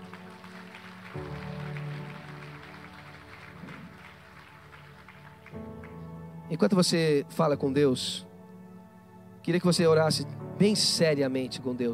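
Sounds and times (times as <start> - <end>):
audience applauding: 0.0 - 6.2
speech: 6.5 - 8.3, 9.5 - 11.9.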